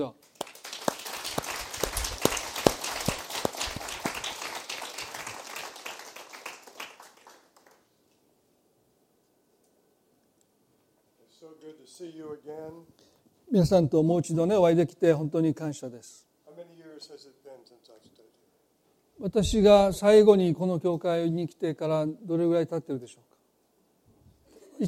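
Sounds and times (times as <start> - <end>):
speech: 0.0 - 0.3, 12.0 - 18.1, 19.2 - 23.3
church audience applauding in welcome: 0.0 - 7.9.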